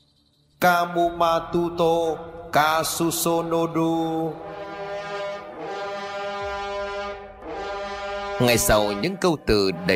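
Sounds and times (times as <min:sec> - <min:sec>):
speech: 0:00.6 - 0:04.6, 0:08.4 - 0:09.9
long blast of animal horn trumpet: 0:04.2 - 0:09.9.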